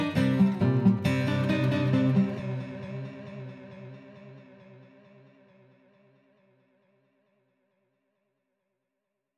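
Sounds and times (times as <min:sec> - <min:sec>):
guitar with recirculating delay effect: 0:00.0 - 0:05.7.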